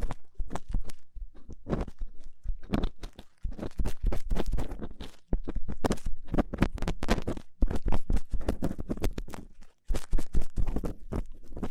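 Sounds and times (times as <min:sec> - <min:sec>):
rough ear cleaning scratchy crackling and rubbing: 0:00.0 - 0:11.7.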